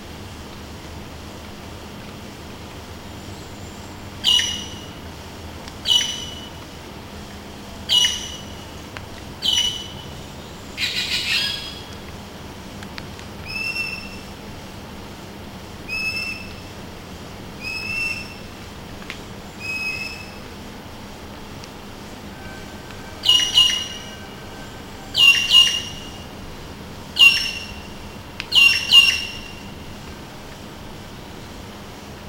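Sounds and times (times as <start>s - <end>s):
Cissa thalasina calling: 4.2s - 4.9s, 5.8s - 6.5s, 7.9s - 8.7s, 9.4s - 10.1s, 10.8s - 12.0s, 13.4s - 14.3s, 17.6s - 18.5s, 19.6s - 20.5s, 22.3s - 26.4s, 27.2s - 29.8s.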